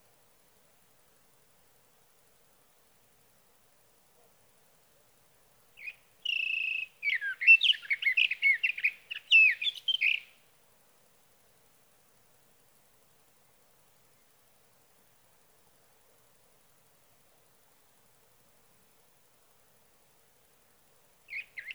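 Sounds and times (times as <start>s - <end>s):
Sage thrasher singing through the night: 5.8s - 10.3s, 21.3s - 21.7s.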